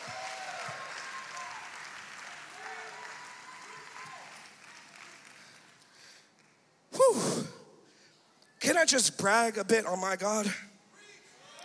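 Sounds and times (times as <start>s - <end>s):
crowd clapping: 0.0s - 6.8s
speech: 8.7s - 10.7s.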